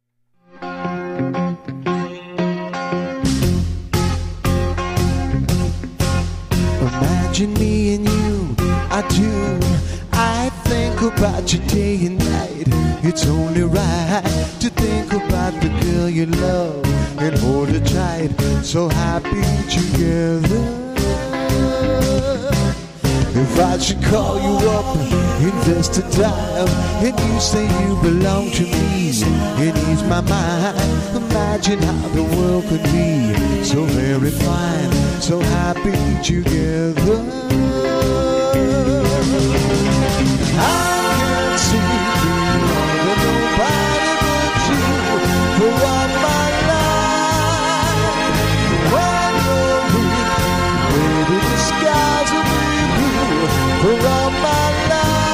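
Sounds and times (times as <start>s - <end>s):
50s 60s band playing: 0.5s - 55.3s.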